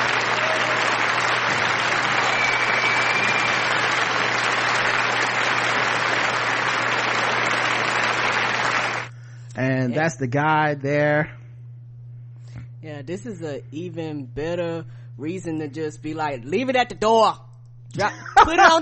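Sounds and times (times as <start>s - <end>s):
crowd applause: 0.0s - 9.1s
faint low hum: 0.0s - 18.8s
speech: 10.0s - 11.4s, 12.8s - 18.8s.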